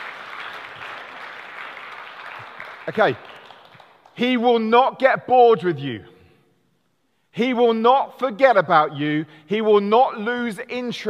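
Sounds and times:
audience applause: 0:00.0 - 0:04.1
speech: 0:02.9 - 0:03.3, 0:04.2 - 0:06.1, 0:07.4 - 0:11.0.

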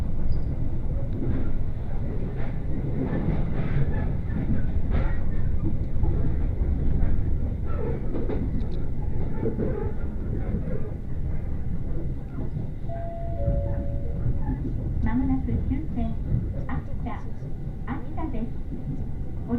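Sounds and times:
Uetsu Line train carriage rumbling between Ugo-Honjō and Akita: 0:00.0 - 0:19.5
passenger voices murmuring on a crowded train: 0:08.8 - 0:19.5
short tonal beep: 0:12.9 - 0:14.4.

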